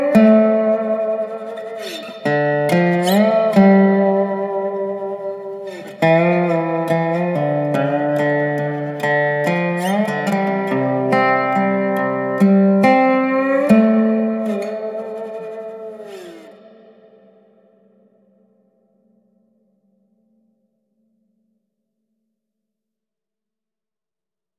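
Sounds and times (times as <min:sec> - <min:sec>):
Dobro resonator guitar through Master Room MR-IV reverb: 0:00.0 - 0:17.8.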